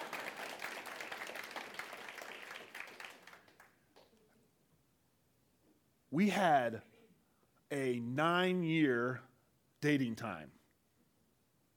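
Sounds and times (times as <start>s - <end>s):
audience applause: 0.0s - 3.8s
speech: 6.1s - 6.9s, 7.7s - 10.6s.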